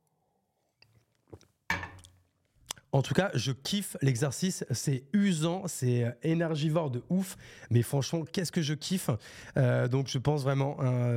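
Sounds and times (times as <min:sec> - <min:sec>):
faint mouth clicks: 0:02.6 - 0:02.9
speech: 0:02.9 - 0:11.1.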